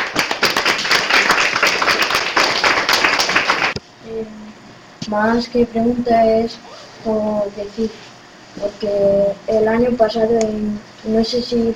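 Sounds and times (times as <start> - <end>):
audience applause: 0.0 - 3.8
speech: 5.1 - 11.7.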